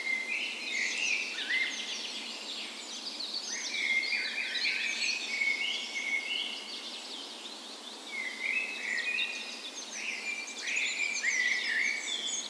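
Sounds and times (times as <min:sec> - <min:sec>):
dawn chorus of many birds: 0:00.0 - 0:12.4
faint steady hiss: 0:00.0 - 0:12.4.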